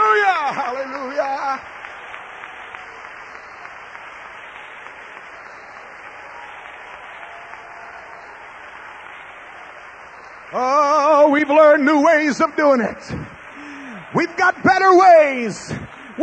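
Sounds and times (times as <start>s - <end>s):
audience clapping: 0.0s - 16.2s
speech: 10.5s - 10.7s, 11.3s - 13.3s, 14.1s - 16.2s.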